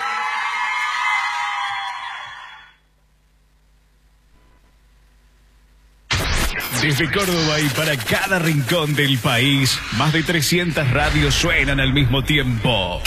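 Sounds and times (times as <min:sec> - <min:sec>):
crowd applause and cheering: 0:00.0 - 0:02.8
whoops and yells: 0:00.0 - 0:02.8
speech: 0:06.8 - 0:13.0.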